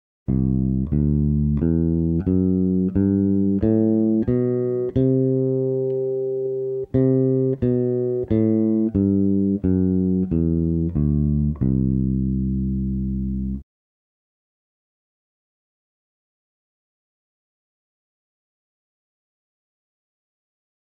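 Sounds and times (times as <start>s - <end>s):
lydian mode melody: 0.3s - 13.6s.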